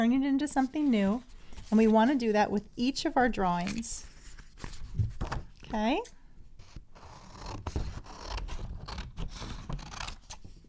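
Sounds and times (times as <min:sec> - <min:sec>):
speech: 0:00.0 - 0:05.1, 0:05.7 - 0:06.2
scissors cutting a paper drawing along drawn lines: 0:07.0 - 0:10.5.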